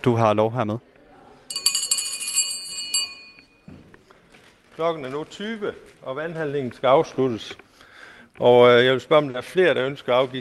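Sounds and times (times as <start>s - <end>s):
speech: 0.0s - 0.9s, 4.8s - 7.6s, 8.4s - 10.3s
hand bell ringing: 1.5s - 3.6s.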